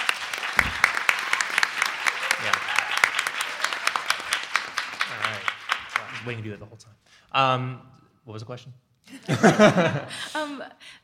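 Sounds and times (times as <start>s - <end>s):
audience applause: 0.0s - 6.6s
speech: 6.2s - 11.0s
laughter: 9.1s - 10.5s.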